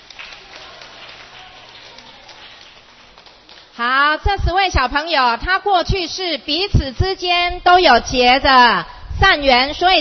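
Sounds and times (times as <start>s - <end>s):
audience applause for children: 0.0s - 3.8s
speech: 3.8s - 9.9s.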